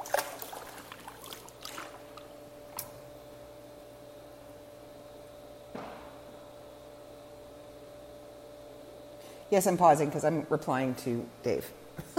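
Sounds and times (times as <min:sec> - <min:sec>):
water splashing in a swimming pool: 0:00.0 - 0:03.0
speech: 0:09.5 - 0:11.8.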